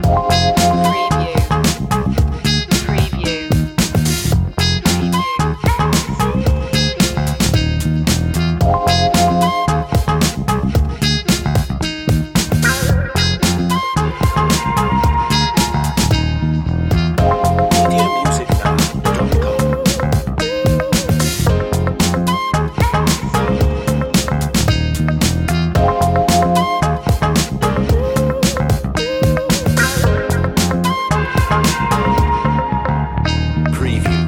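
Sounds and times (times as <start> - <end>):
long jazz loop: 0.0 - 34.2.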